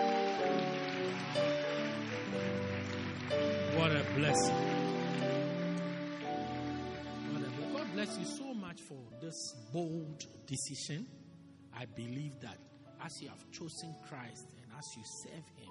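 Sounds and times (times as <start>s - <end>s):
audience hand clapping: 0.0s - 8.4s
speech: 4.0s - 4.8s, 8.1s - 15.6s.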